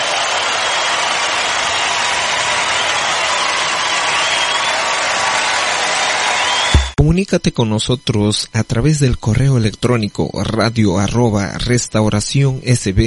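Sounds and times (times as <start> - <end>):
audience applause: 0.0 - 7.0
speech: 7.1 - 13.0.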